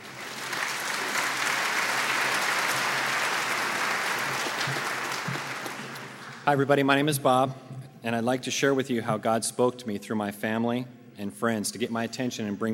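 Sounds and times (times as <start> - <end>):
audience applause welcoming a speaker: 0.0 - 6.5
speech: 6.5 - 12.7.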